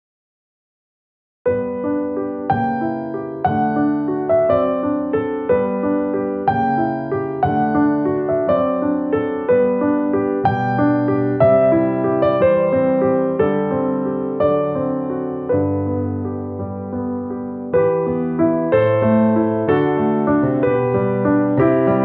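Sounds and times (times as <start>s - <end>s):
piano: 1.4s - 22.0s.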